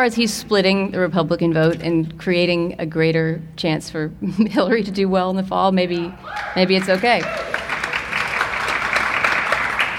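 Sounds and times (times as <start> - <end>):
speech: 0.0 - 7.7
light smattering of audience applause: 6.3 - 9.9.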